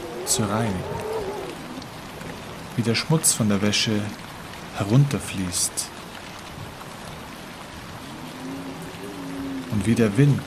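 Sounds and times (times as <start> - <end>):
rain falling: 0.0 - 10.4
speech: 0.3 - 1.1, 2.8 - 4.2, 4.8 - 5.9, 9.8 - 10.4.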